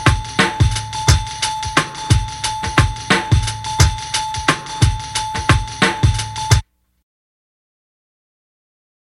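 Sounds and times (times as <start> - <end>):
gangsta bells: 0.0 - 6.6.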